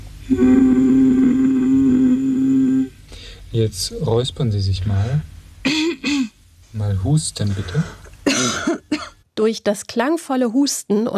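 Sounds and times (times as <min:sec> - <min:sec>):
person humming a deep low note: 0:00.2 - 0:03.0
speech: 0:03.6 - 0:05.3, 0:06.8 - 0:08.6, 0:09.4 - 0:11.1.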